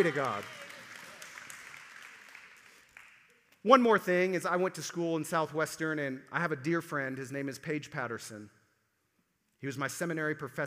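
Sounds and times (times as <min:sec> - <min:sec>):
speech: 0:00.0 - 0:00.6, 0:03.6 - 0:08.6, 0:09.6 - 0:10.6
crowd clapping: 0:00.0 - 0:03.6.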